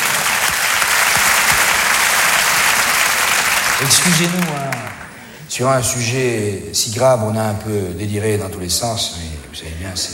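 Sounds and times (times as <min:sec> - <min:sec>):
applause: 0:00.0 - 0:05.2
speech: 0:03.8 - 0:04.9, 0:05.5 - 0:10.1.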